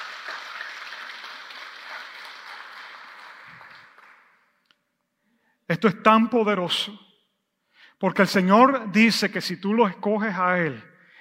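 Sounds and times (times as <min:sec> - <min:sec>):
audience applause: 0:00.0 - 0:04.4
speech: 0:05.7 - 0:07.0, 0:08.0 - 0:10.9.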